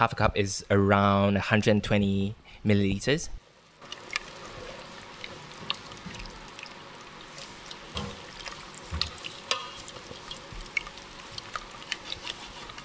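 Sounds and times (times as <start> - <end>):
speech: 0.0 - 3.4
heavy cream simmering in miso mushroom pasta sauce: 3.7 - 12.8
soft stirring clicks and scrapes: 3.8 - 12.8.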